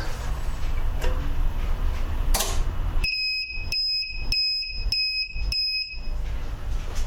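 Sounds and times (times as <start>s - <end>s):
low hum: 0.0s - 7.0s
UPS power supply starting up with electronic beeps: 3.0s - 6.2s.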